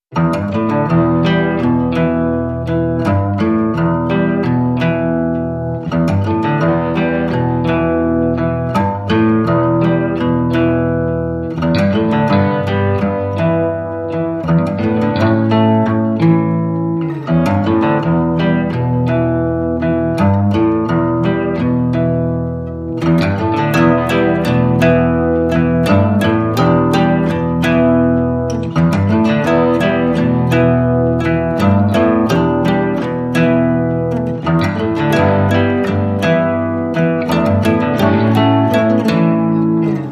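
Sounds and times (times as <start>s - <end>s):
guitars playing: 0.0s - 40.1s.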